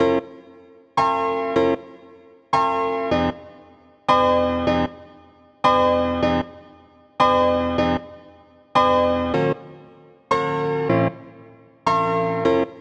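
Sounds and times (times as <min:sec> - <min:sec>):
piano: 0:00.0 - 0:12.7.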